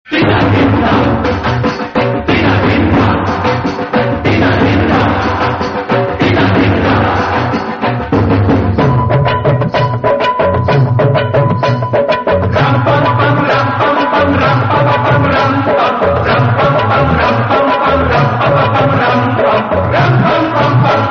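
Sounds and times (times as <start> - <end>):
instrumental theme music: 0.1 - 21.0.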